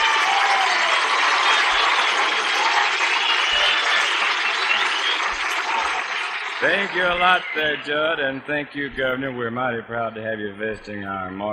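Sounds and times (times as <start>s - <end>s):
audience applause at the Grand Ole Opry welcoming the governor of Florida: 0.0s - 8.5s
speech: 6.6s - 11.5s.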